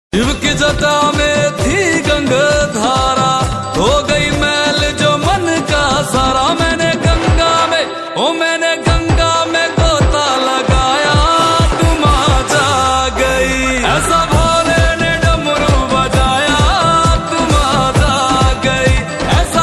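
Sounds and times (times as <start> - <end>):
Shivratri devotional song: 0.1 - 19.6.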